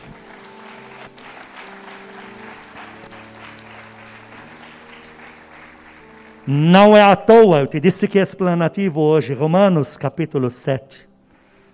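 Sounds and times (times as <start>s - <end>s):
applause: 0.0s - 7.7s
speech: 6.5s - 11.1s.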